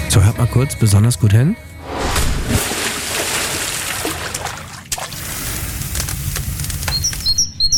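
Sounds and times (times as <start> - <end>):
speech: 0.2 - 1.7
splashing at an open-air pool: 2.0 - 5.4
birds chirping and tweeting: 6.8 - 7.7.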